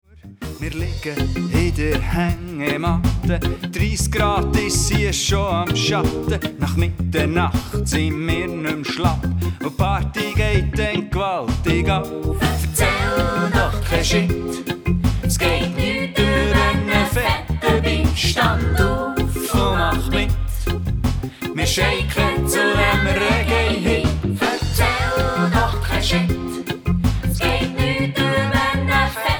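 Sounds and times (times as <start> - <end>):
short reggae music: 0.1 - 29.3.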